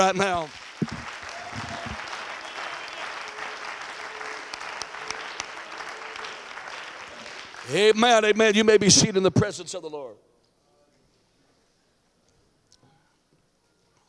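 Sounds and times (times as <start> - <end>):
speech: 0.0 - 1.0, 7.7 - 10.3
audience clapping hands: 0.0 - 8.8.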